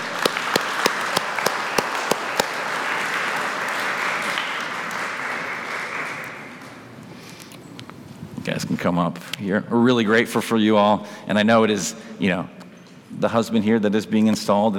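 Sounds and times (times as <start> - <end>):
audience applauding: 0.0 - 6.9
speech: 8.8 - 12.6, 13.2 - 14.7.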